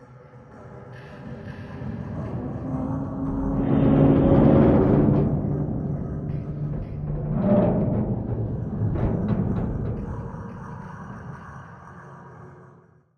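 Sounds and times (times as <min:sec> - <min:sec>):
creak: 0:03.1 - 0:10.5.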